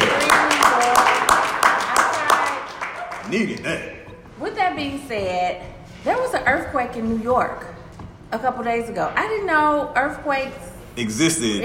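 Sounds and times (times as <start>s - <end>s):
steady hand clapping: 0.0s - 3.8s
speech: 3.3s - 11.6s.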